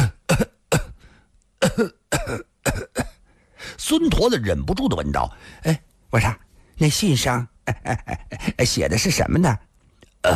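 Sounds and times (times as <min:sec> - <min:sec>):
person coughing while bent over: 0:00.0 - 0:01.0, 0:01.6 - 0:03.2
speech: 0:01.8 - 0:02.5, 0:03.9 - 0:10.3.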